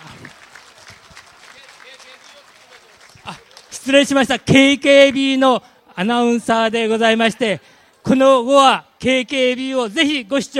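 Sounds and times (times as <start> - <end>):
audience applause: 0.0 - 4.0
speech: 3.3 - 10.5.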